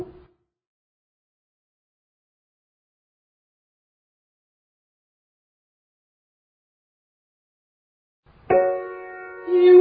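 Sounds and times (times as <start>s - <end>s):
descending triad arpeggio: 8.5s - 9.7s.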